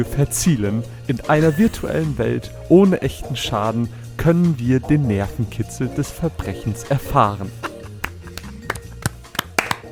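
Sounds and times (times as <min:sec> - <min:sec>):
speech: 0:00.0 - 0:07.7
hand clapping: 0:07.6 - 0:09.9.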